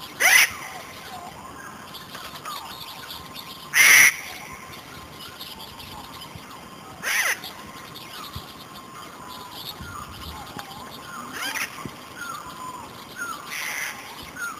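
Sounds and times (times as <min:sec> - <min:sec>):
lorikeet screeching and chattering: 0:00.2 - 0:00.7, 0:03.7 - 0:04.3, 0:07.0 - 0:07.5, 0:11.2 - 0:11.8, 0:13.2 - 0:14.5.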